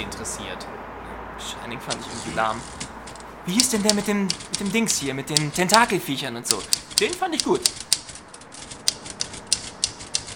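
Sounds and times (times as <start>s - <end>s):
speech: 0.0s - 7.8s
steady hiss: 1.4s - 8.0s
voice imitating a typewriter: 1.9s - 10.3s.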